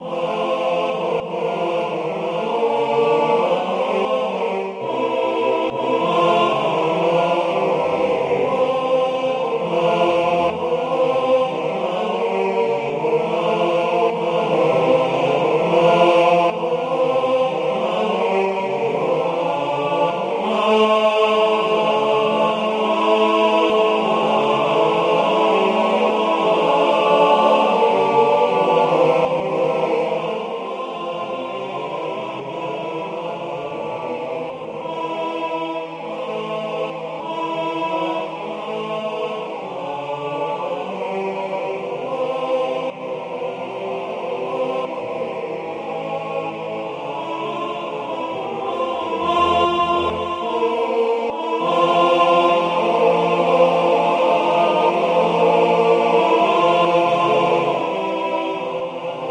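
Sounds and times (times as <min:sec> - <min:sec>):
choir singing a concerto finale: 0:00.0 - 0:59.3.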